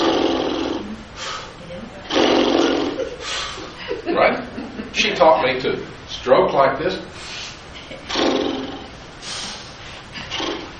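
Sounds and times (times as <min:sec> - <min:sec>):
voice imitating blowing bubbles underwater: 0:00.0 - 0:01.0, 0:02.0 - 0:03.2, 0:08.0 - 0:08.9
speech: 0:05.2 - 0:07.3.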